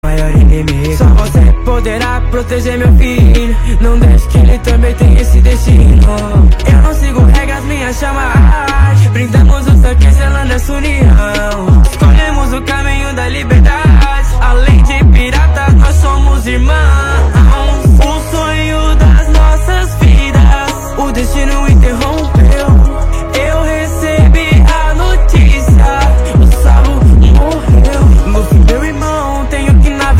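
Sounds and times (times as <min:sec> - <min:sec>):
rap music: 0:00.0 - 0:30.1.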